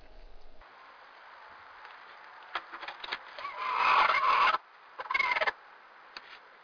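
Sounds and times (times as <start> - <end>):
annoyed hen squawking while laying: 3.4 - 5.5.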